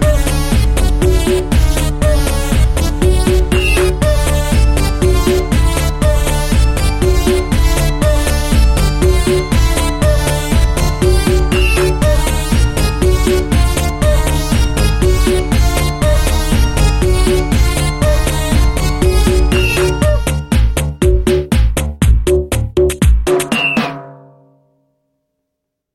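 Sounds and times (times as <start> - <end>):
instrumental background music: 0.0 - 24.7.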